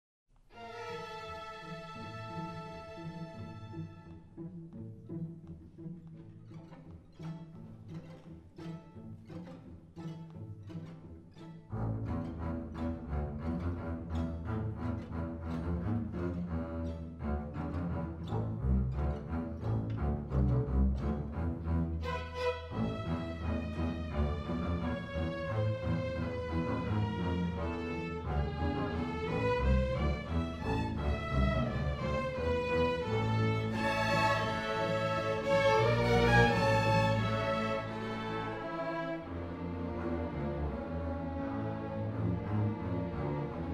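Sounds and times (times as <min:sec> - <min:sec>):
basses playing: 0:11.7 - 0:43.7.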